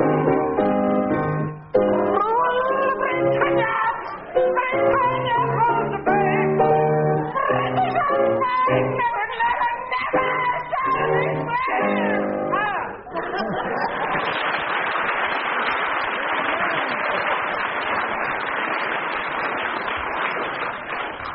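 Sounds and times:
crowd noise: 0:00.0 - 0:21.3
music with singing: 0:02.2 - 0:12.5
laughter: 0:07.4 - 0:08.7, 0:13.1 - 0:14.6
audience applause on a comedy panel game: 0:13.2 - 0:21.3.

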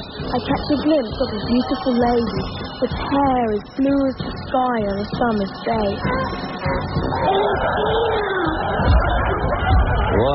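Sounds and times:
speech: 0:00.3 - 0:08.5, 0:10.2 - 0:10.3
crowd cheering: 0:06.6 - 0:10.3.

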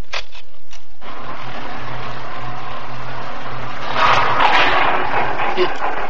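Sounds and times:
elevator running with mechanical hum: 0:01.0 - 0:06.0.

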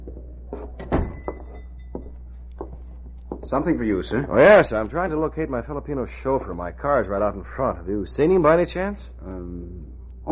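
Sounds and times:
tobacco shop door opening: 0:00.5 - 0:01.6
speech: 0:03.5 - 0:10.3.

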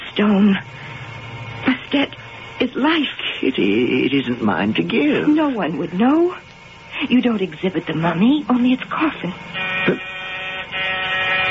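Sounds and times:
speech: 0:00.2 - 0:00.9, 0:01.9 - 0:06.4, 0:07.0 - 0:10.1
electric door buzzer: 0:08.9 - 0:11.4.

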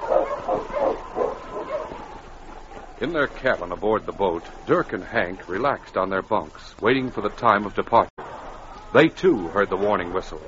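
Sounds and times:
husky sled dog barking: 0:00.0 - 0:02.0
speech: 0:03.0 - 0:08.1, 0:08.9 - 0:10.4.

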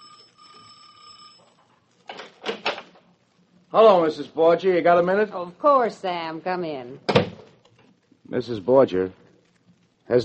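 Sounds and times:
doorbell ringing: 0:00.0 - 0:01.6
speech: 0:03.7 - 0:07.2, 0:08.3 - 0:09.2, 0:10.1 - 0:10.2.

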